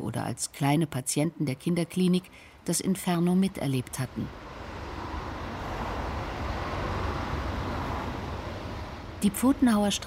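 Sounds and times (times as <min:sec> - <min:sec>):
speech: 0:00.1 - 0:04.5, 0:09.2 - 0:10.0
road traffic from the new Waldschlösschenbrücke bridge: 0:02.2 - 0:10.0.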